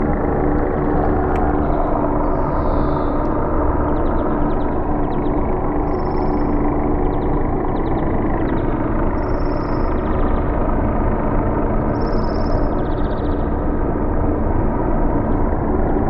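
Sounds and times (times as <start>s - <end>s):
helicopter: 0.0s - 16.0s.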